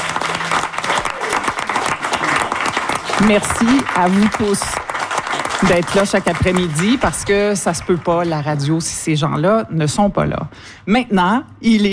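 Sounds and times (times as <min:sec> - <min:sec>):
audience applause: 0:00.0 - 0:08.6
speech: 0:03.2 - 0:04.8, 0:05.6 - 0:11.9.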